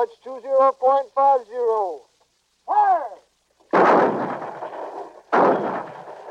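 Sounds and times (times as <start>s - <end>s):
speech: 0.0s - 2.1s, 2.7s - 3.2s
mortars firing high-explosive shells: 3.7s - 6.2s.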